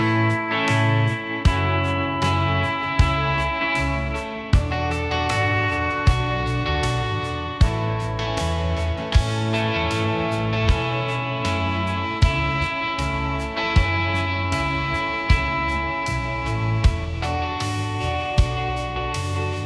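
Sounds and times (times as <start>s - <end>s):
country music ringtone: 0.0s - 19.6s.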